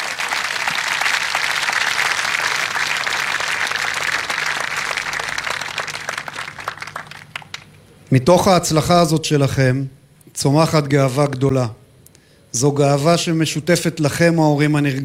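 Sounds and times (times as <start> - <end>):
audience applause: 0.0 - 7.8
speech: 8.1 - 11.8, 12.5 - 15.0.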